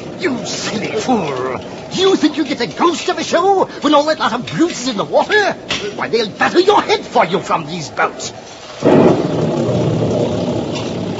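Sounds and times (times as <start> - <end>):
heavy rain in a squall: 0.0 - 11.1
speech: 0.2 - 9.2
thunder: 8.8 - 11.1.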